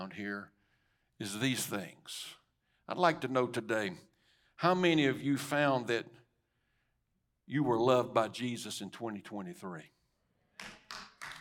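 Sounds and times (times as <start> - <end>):
speech: 0.1 - 0.6, 1.2 - 6.2, 7.5 - 10.0
hand claps from a church congregation: 10.6 - 11.3.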